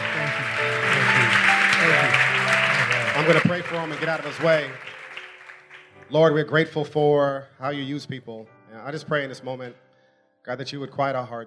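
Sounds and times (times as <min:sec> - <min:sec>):
audience applause welcoming a speaker onto the stage: 0:00.0 - 0:06.0
speech: 0:03.2 - 0:04.9, 0:06.1 - 0:09.8, 0:10.4 - 0:11.4.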